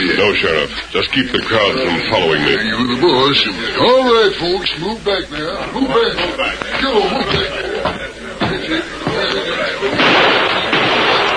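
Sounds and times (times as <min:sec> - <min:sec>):
speech: 0:00.0 - 0:08.0
laughter: 0:00.0 - 0:11.3
gunshot fired through a window: 0:10.0 - 0:11.3.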